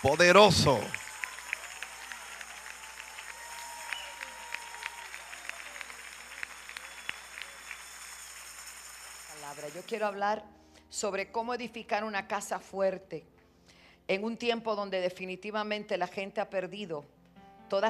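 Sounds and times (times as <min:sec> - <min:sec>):
speech: 0:00.0 - 0:01.0, 0:09.7 - 0:13.4, 0:14.1 - 0:17.8
audience applause: 0:00.0 - 0:09.9.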